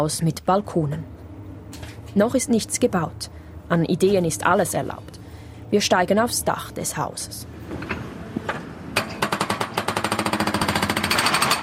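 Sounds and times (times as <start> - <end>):
speech: 0.0 - 8.0
excavator breaking apart a stone chimney: 9.0 - 11.6.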